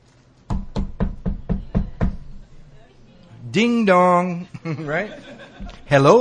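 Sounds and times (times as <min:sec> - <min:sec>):
knocking: 0:00.5 - 0:02.7
speech: 0:03.6 - 0:06.1
laughter: 0:04.5 - 0:06.1.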